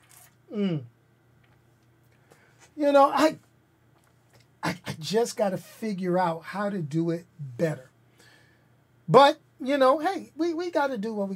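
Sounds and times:
person sipping a drink: 0:00.0 - 0:02.7
person sighing ahh of satisfaction: 0:00.5 - 0:00.9
speech: 0:00.5 - 0:00.9, 0:02.8 - 0:03.4, 0:05.0 - 0:07.9, 0:09.1 - 0:11.3.

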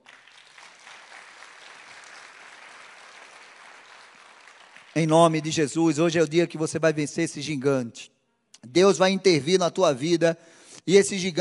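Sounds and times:
crowd applause: 0:00.0 - 0:05.1
speech: 0:05.0 - 0:11.3.

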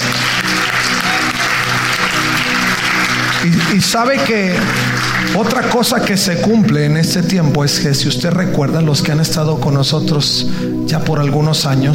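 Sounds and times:
audience applauding: 0:00.0 - 0:06.3
speech: 0:03.4 - 0:11.9.

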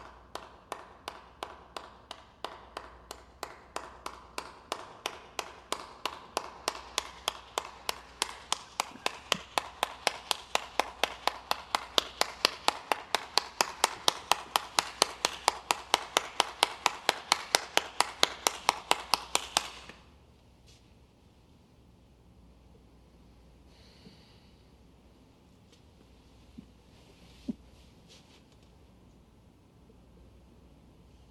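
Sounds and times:
rhythmic hand clapping: 0:00.0 - 0:20.1.

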